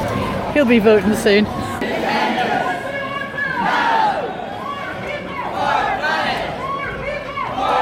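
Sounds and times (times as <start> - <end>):
speech: 0.5 - 1.6
crowd chanting at a march: 1.6 - 7.8.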